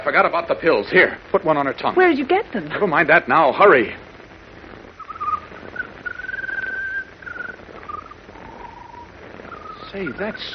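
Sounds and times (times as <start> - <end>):
speech: 0.0 - 4.0, 10.0 - 10.5
soft hiss: 0.0 - 10.5
bird singing a peculiar song: 5.0 - 10.5.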